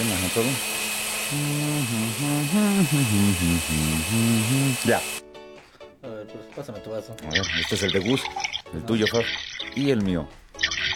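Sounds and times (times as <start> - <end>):
blender blending papaya, oats and flaxseed: 0.0 - 5.2
speech: 0.3 - 0.7, 1.3 - 5.2, 6.3 - 10.4.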